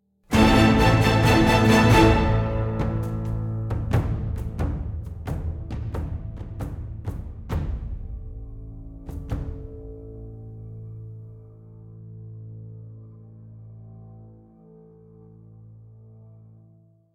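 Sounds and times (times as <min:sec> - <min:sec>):
battle music: 0:00.3 - 0:07.8.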